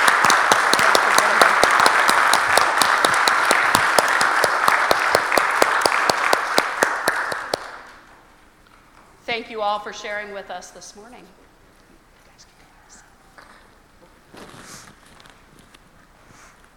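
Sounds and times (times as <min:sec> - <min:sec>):
audience applause: 0:00.0 - 0:08.1
speech: 0:09.4 - 0:11.4.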